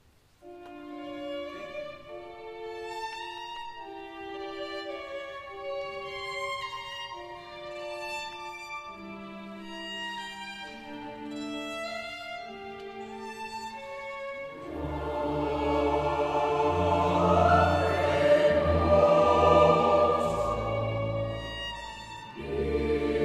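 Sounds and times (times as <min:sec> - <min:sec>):
boys' choir singing a requiem movement: 0:14.6 - 0:23.2.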